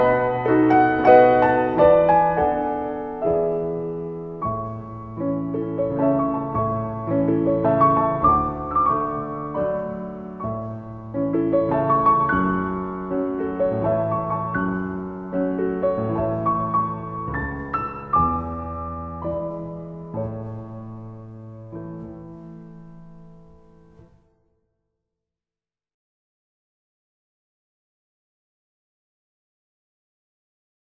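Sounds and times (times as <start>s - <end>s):
waltz: 0.0s - 24.0s.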